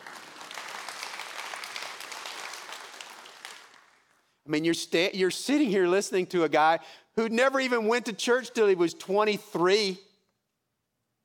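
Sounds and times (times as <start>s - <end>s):
audience applause: 0.0s - 4.2s
speech: 4.5s - 10.1s.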